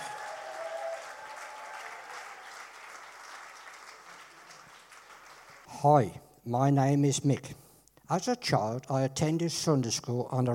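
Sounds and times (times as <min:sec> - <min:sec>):
audience applause: 0:00.0 - 0:05.7
speech: 0:05.8 - 0:10.5.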